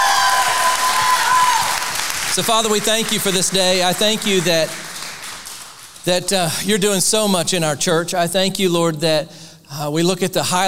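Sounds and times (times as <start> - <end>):
faint cheers: 0.0 - 2.1
audience applause: 0.0 - 6.1
speech: 2.4 - 4.8, 6.0 - 10.6.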